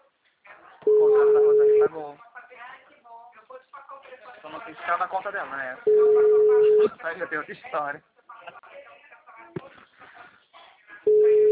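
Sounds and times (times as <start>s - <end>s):
telephone busy tone from a call that fails to connect: 0.9s - 1.9s, 5.9s - 6.8s, 11.1s - 11.5s
speech: 4.7s - 8.1s.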